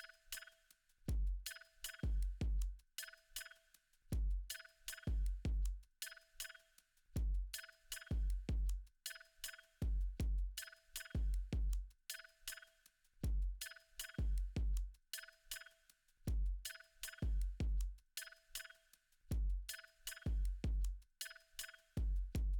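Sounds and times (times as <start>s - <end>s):
percussion: 0.0s - 22.5s.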